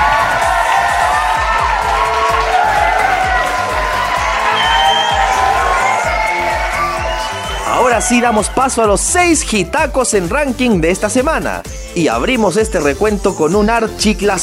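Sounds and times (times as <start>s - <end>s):
audience applause: 0.0s - 8.8s
speech: 8.0s - 14.4s.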